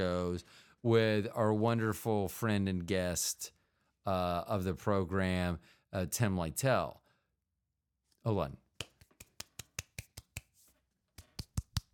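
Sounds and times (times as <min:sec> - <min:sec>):
speech: 0:00.0 - 0:07.0, 0:08.2 - 0:08.6
quiet hand clapping: 0:08.8 - 0:11.9.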